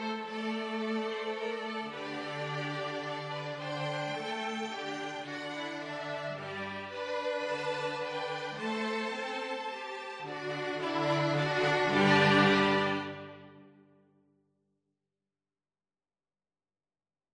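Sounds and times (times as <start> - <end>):
cello: 0.0 - 13.7.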